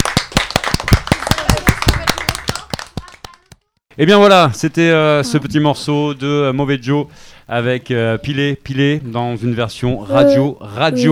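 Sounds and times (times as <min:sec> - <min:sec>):
applause, hands clapping: 0:00.0 - 0:03.8
speech: 0:04.0 - 0:11.1.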